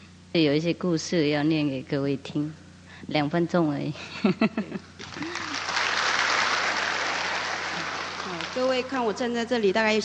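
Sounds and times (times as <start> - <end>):
speech: 0.4 - 5.5, 8.6 - 10.0
audience clapping: 5.0 - 9.0.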